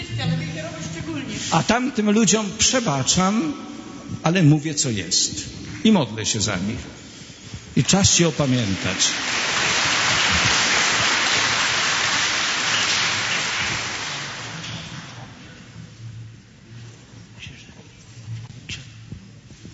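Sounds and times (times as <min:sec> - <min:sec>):
speech: 0:00.2 - 0:07.0, 0:07.8 - 0:09.5
audience applause: 0:07.8 - 0:15.4.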